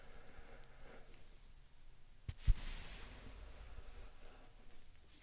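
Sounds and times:
slime and sand rubbing and squishing: 0:02.3 - 0:04.4.

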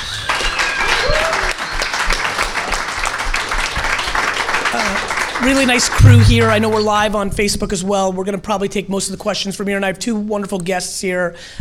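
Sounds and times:
small group clapping and applauding: 0:00.0 - 0:06.1
speech: 0:04.8 - 0:11.5.

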